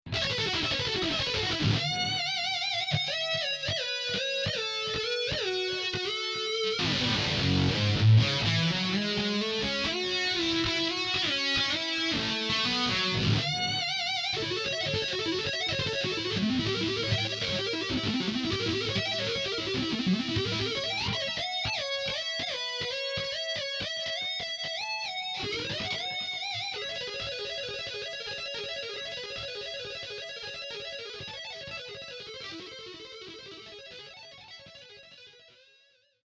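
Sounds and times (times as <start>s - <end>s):
shred guitar lead: 0.1s - 34.8s.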